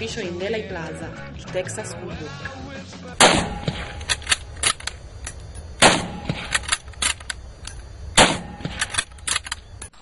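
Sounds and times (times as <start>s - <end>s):
speech: 0.0s - 3.9s
Mannlicher-Carcano rifle shots in Dealey Plaza, Dallas: 3.2s - 4.9s, 5.8s - 7.3s, 8.1s - 9.6s
rifle clicks and rattles: 3.9s - 5.7s, 6.3s - 7.9s, 8.7s - 10.0s.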